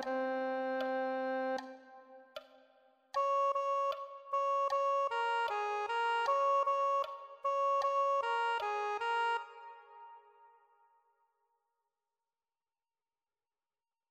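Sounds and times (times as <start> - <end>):
soprano saxophone: 0.0 - 2.1, 3.2 - 10.6.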